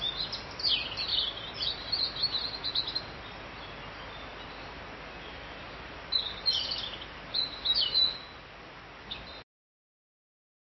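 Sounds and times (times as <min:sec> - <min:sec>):
bird chirping and twittering: 0:00.0 - 0:08.4.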